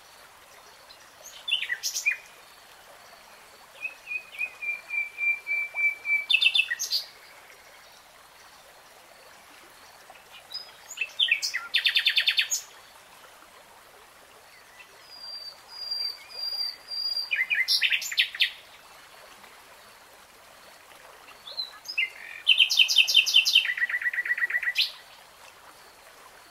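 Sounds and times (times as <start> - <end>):
steady hiss: 0.0 - 26.5
nightingale song: 0.8 - 2.4, 3.7 - 8.0, 10.1 - 12.8, 14.5 - 18.7, 21.3 - 25.2.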